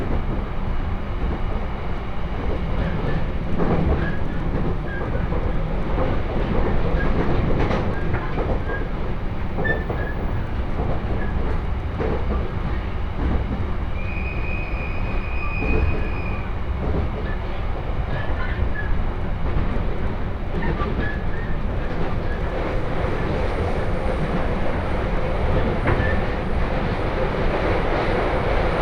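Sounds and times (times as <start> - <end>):
train on the Tohoku Main Line rumbling: 0.0 - 28.8.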